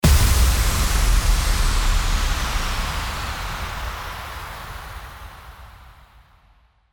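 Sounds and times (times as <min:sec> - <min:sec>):
impact: 0:00.0 - 0:05.8.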